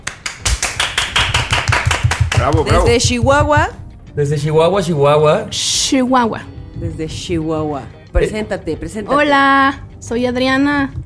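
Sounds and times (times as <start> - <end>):
applause: 0.0 - 2.8
speech: 2.4 - 11.0.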